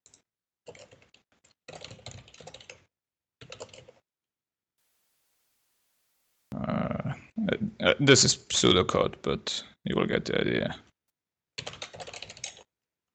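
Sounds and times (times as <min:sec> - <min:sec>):
typing on a computer keyboard: 0:00.1 - 0:04.0, 0:11.6 - 0:12.7
speech: 0:07.4 - 0:10.9.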